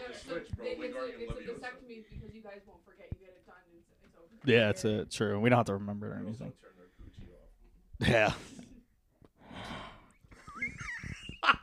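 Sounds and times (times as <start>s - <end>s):
speech: 0.1s - 6.8s, 8.0s - 8.6s
person taking an audible breath: 9.4s - 10.2s.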